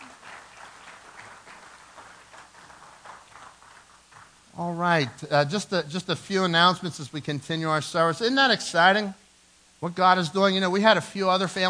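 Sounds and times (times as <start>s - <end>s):
audience applause: 0.0s - 4.3s
speech: 4.6s - 9.2s, 9.8s - 11.6s.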